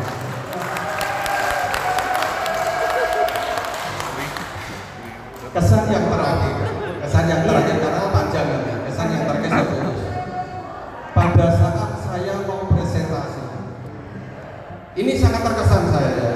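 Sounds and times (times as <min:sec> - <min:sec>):
audience applause: 0:00.0 - 0:05.6
crowd murmur: 0:00.0 - 0:16.2
laughter: 0:00.5 - 0:08.5, 0:09.1 - 0:11.2.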